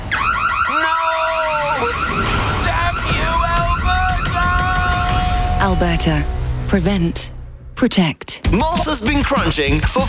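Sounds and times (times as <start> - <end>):
home security system alarm going off: 0.1 - 6.3
speech: 5.8 - 10.0.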